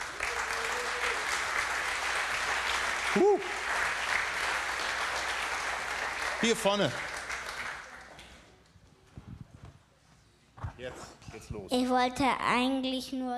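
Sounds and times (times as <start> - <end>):
audience applause: 0.0 - 8.4
speech: 3.2 - 3.6, 6.4 - 7.1, 11.5 - 13.3.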